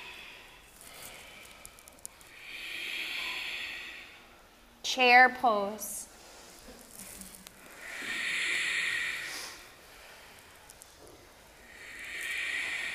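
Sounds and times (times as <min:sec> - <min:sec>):
ujjayi breathing, slow ocean-like hissing breaths: 0:00.0 - 0:04.5, 0:07.6 - 0:10.8, 0:11.6 - 0:12.9
speech: 0:05.0 - 0:06.1.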